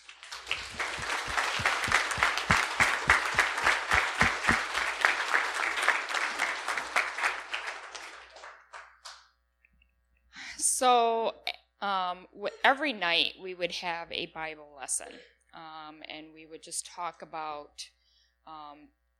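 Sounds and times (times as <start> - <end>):
audience applause: 0.0 - 8.8
speech: 12.6 - 15.4, 16.2 - 19.0.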